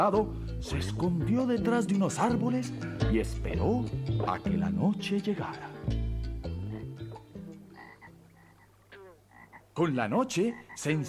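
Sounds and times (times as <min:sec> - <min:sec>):
speech: 0:00.0 - 0:06.0, 0:09.8 - 0:11.0
toad croaking: 0:05.7 - 0:11.0.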